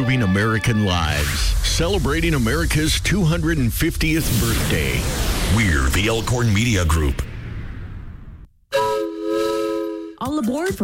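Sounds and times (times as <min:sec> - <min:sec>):
speech: 0:00.0 - 0:07.3, 0:10.2 - 0:10.8
rumble: 0:01.3 - 0:08.5
Sumter Valley Railroad steam locomotive whistle: 0:08.7 - 0:10.2.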